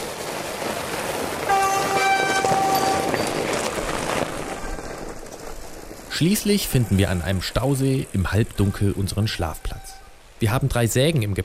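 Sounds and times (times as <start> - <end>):
group of fat bikes approaching in the mountains: 0.0 - 10.4
speech: 6.2 - 9.8, 10.4 - 11.4.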